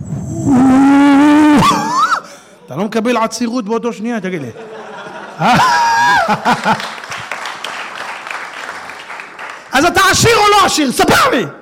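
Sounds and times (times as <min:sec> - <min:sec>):
person imitating jackals howling: 0:00.2 - 0:02.2
speech: 0:02.8 - 0:04.7, 0:05.4 - 0:07.0, 0:09.8 - 0:11.6
laughter: 0:04.2 - 0:07.3.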